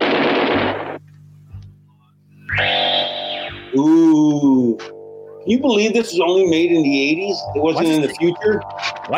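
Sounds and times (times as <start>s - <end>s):
low droning hum: 0.0s - 9.1s
bright warbling electronic tone: 2.5s - 9.1s
synthesized helicopter-blade effect in a song: 2.5s - 9.1s
speech: 3.8s - 9.1s.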